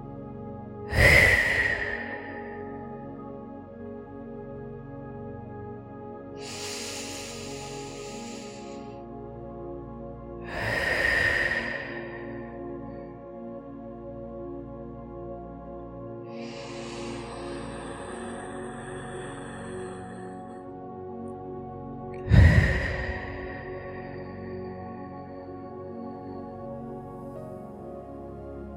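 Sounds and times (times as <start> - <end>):
slow deep breaths during a guided meditation: 0.8 - 3.7, 6.2 - 13.6, 16.3 - 27.7.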